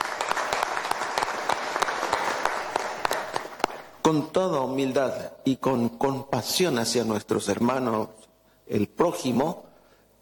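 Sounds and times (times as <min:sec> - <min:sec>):
audience applause: 0:00.0 - 0:04.0
speech: 0:04.1 - 0:09.6.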